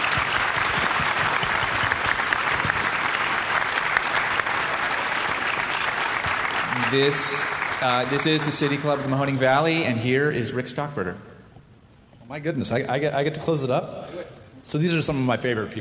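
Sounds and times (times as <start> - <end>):
audience applauding: 0.0 - 9.6
speech: 6.9 - 11.3, 12.3 - 15.7.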